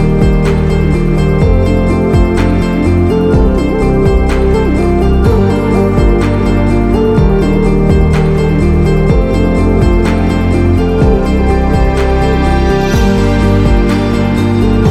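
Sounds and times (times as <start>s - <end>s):
Arabian inspiring music: 0.0s - 14.8s.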